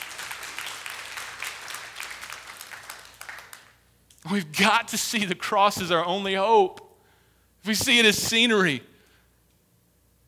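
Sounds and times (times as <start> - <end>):
audience clapping: 0.0 - 6.6
speech: 4.2 - 6.8, 7.6 - 8.9.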